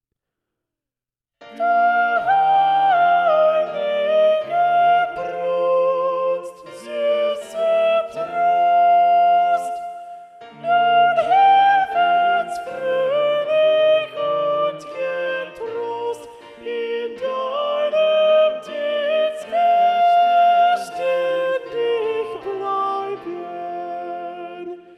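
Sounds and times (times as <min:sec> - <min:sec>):
soprano singing a motet: 0:01.5 - 0:24.9.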